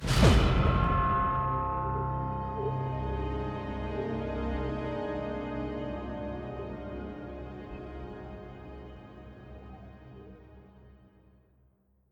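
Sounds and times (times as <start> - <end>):
jingle music: 0.9 - 8.9.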